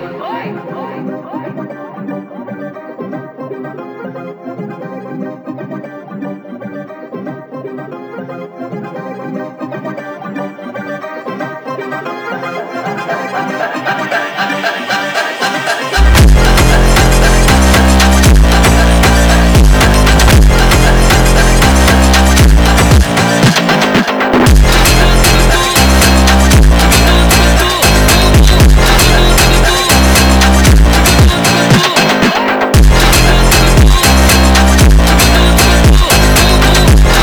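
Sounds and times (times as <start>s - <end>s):
epic funk music: 15.0s - 37.2s.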